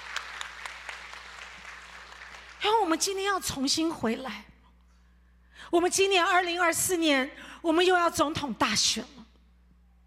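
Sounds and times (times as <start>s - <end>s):
church congregation clapping in agreement during a sermon: 0.0s - 2.6s
speech: 2.9s - 4.5s, 5.7s - 9.2s.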